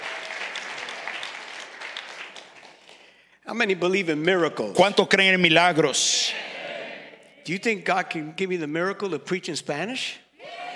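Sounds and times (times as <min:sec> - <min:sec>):
audience applause: 0:00.0 - 0:03.1
speech: 0:03.5 - 0:06.5, 0:07.4 - 0:10.2.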